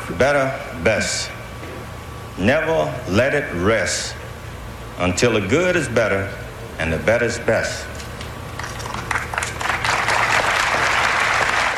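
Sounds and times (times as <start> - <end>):
speech: 0.1 - 1.4, 2.4 - 4.2, 5.0 - 7.9
polite audience applause: 8.6 - 11.7.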